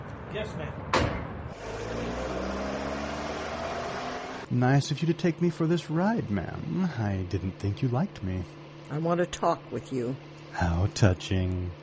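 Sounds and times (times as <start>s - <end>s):
speech: 0.3s - 2.4s, 4.5s - 11.8s
car engine rumbling as the car drives off: 1.3s - 10.6s.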